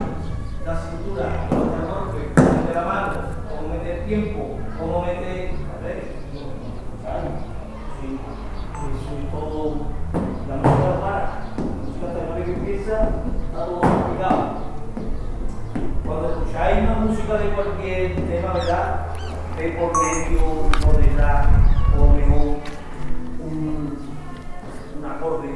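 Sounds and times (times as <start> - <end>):
flamenco class: 0.0 - 25.5.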